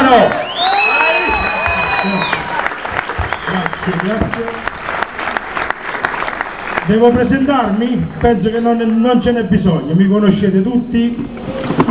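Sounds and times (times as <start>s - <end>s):
crowd cheering with shouts and whoops: 0.0s - 4.2s
crowd applauding loudly: 0.0s - 9.3s
speech: 0.1s - 0.4s, 6.9s - 11.7s.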